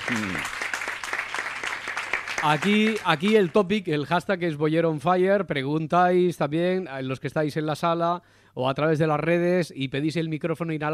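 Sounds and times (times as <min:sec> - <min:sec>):
audience applause: 0:00.0 - 0:03.6
speech: 0:00.1 - 0:00.6, 0:02.4 - 0:10.9.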